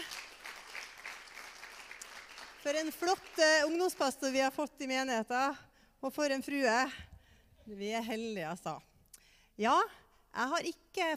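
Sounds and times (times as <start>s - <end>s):
audience applause: 0.0s - 2.6s
speech: 2.6s - 7.1s, 7.7s - 8.9s, 9.6s - 11.1s.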